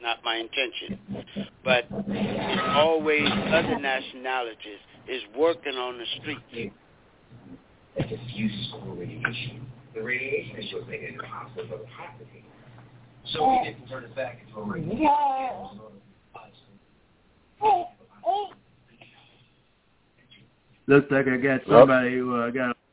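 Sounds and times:
speech: 0:00.1 - 0:06.8, 0:08.0 - 0:12.5, 0:13.3 - 0:16.0, 0:17.6 - 0:18.6, 0:20.9 - 0:22.7
little toddler babbling: 0:17.6 - 0:18.6.

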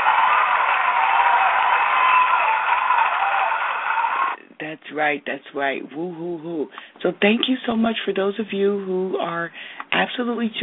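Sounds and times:
round of applause: 0:00.0 - 0:04.4
speech: 0:04.8 - 0:10.6.

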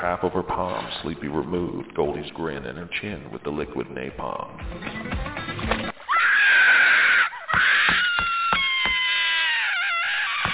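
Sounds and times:
speech: 0:00.0 - 0:05.4
girl screaming in pain: 0:06.1 - 0:10.5.

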